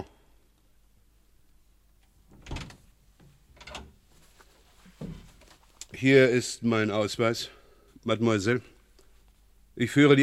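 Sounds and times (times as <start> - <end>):
wooden clunks and thuds of a door being opened: 5.0 - 5.6
speech: 6.0 - 8.7, 9.8 - 10.2.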